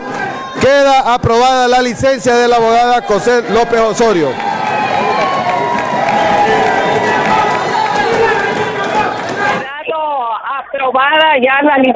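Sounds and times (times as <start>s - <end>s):
speech: 0.7s - 4.5s, 10.9s - 11.9s
many voices shouting in an uproar from a legislative bench: 2.6s - 9.7s.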